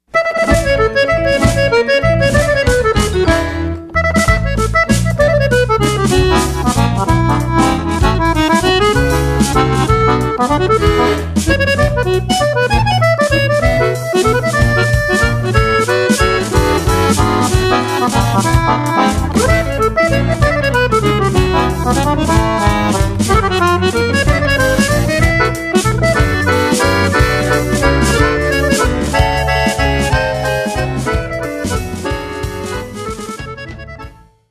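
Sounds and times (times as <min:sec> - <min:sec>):
jazzy waltz: 0:00.2 - 0:34.3.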